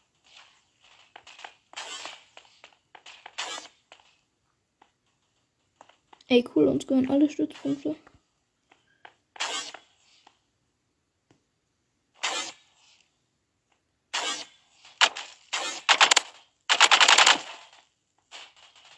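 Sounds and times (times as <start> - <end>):
gunfire in a Roblox video game: 1.2 - 2.4, 3.0 - 3.7, 14.1 - 17.7
speech: 6.3 - 8.1.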